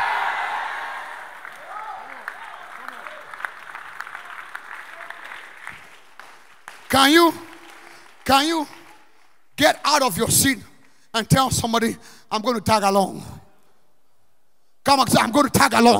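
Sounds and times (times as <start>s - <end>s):
audience clapping and shouting: 0.0s - 9.5s
speech: 6.9s - 7.5s, 8.3s - 8.8s, 9.6s - 13.4s, 14.8s - 15.9s.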